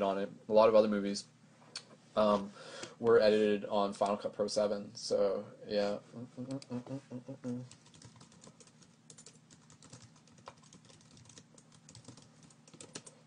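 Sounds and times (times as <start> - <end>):
speech: 0.0 - 1.4, 2.2 - 7.8
computer keyboard typing to send a link: 7.7 - 13.2.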